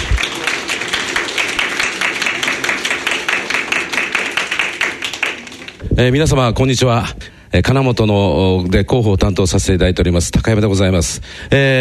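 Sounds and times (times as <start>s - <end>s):
audience applause welcoming speaker: 0.0s - 5.8s
speech: 6.0s - 11.8s.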